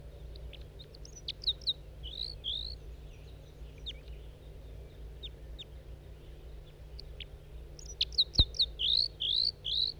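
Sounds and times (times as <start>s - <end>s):
wild male bird calling near its flock: 0.4s - 4.2s, 6.9s - 9.9s.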